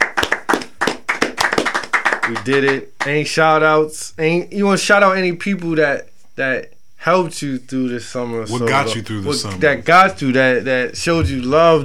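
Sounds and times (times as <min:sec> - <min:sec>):
clapping: 0:00.0 - 0:03.2
speech: 0:02.3 - 0:11.8.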